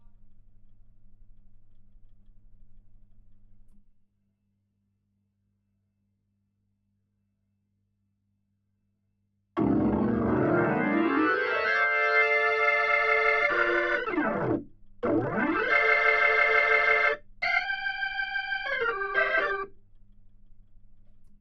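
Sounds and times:
Hammond organ: 0:09.6 - 0:19.7.

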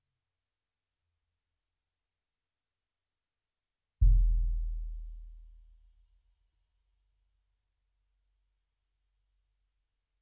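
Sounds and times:
bass drum: 0:04.0 - 0:05.7.

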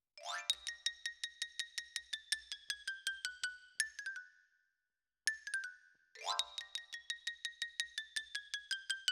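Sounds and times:
close xylophone: 0:00.2 - 0:03.3, 0:05.5 - 0:09.0.

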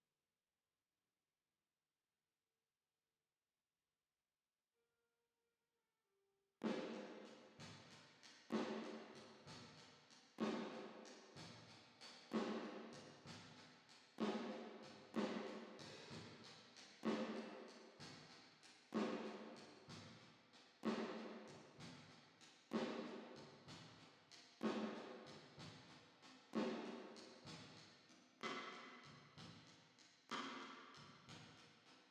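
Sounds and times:
drums with reverb: 0:06.6 - 0:20.2, 0:20.8 - 0:29.7, 0:30.3 - 0:31.8.

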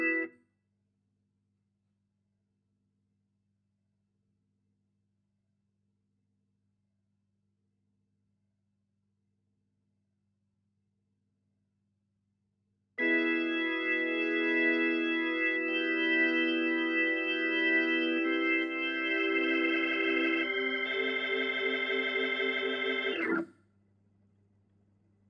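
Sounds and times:
Hammond organ: 0:00.0 - 0:00.3, 0:13.0 - 0:23.4.

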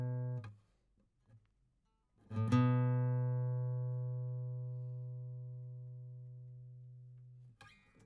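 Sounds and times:
guitar: 0:00.0 - 0:00.6, 0:02.2 - 0:08.0.

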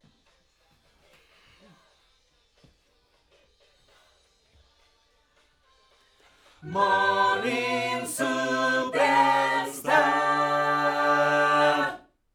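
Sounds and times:
backing vocals on AKG microphone: 0:06.6 - 0:12.0.

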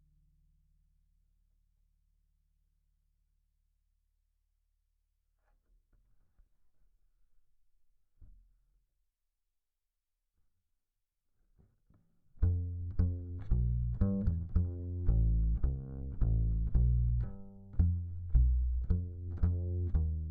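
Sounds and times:
bass guitar recorded by direct input: 0:12.4 - 0:20.2.

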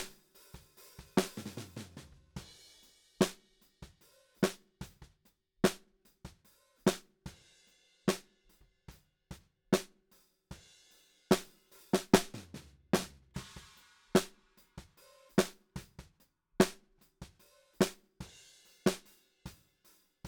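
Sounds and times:
snare drum: 0:00.0 - 0:07.4, 0:09.8 - 0:10.0, 0:11.3 - 0:19.6.

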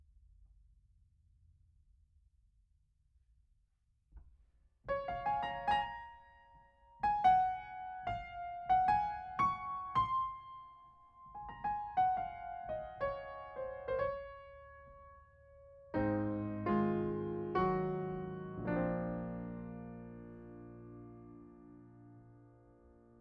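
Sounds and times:
piano: 0:04.9 - 0:23.2.

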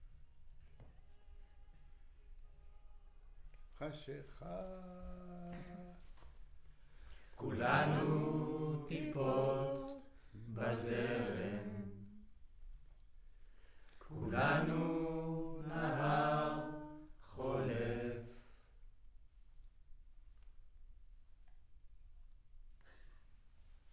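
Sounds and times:
choir recorded with center U47 microphone: 0:07.4 - 0:12.3, 0:14.0 - 0:18.6.

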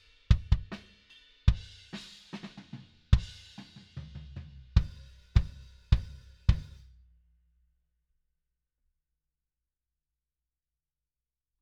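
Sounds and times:
kick drum: 0:00.3 - 0:00.7, 0:03.2 - 0:03.4, 0:04.8 - 0:06.8.

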